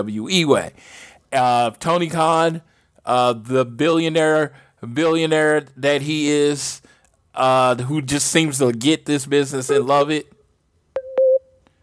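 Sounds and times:
speech: 0:00.0 - 0:10.4
electronic beep on a phone line: 0:11.0 - 0:11.5.

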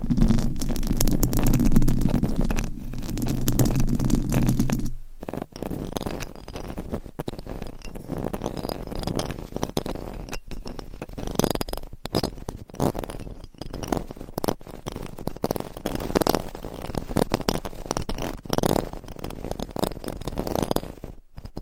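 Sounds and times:
microphone scratched and rubbed: 0:00.0 - 0:19.7.

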